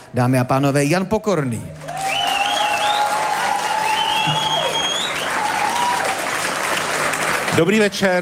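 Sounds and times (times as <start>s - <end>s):
speech: 0.1s - 1.8s, 7.6s - 8.2s
audience applause: 1.8s - 8.2s.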